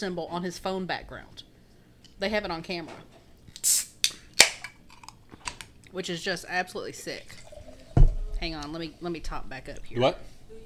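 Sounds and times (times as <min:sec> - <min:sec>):
speech: 0:00.0 - 0:01.5, 0:02.2 - 0:03.9, 0:05.9 - 0:07.4, 0:08.4 - 0:10.6
person chewing a pickle: 0:04.9 - 0:05.3.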